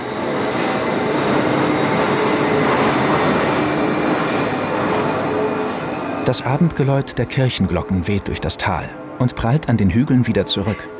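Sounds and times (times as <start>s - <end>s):
faint metallic whine and squeal: 0.0s - 10.9s
suspension railway train running on steel track: 0.0s - 10.9s
speech: 6.3s - 10.9s.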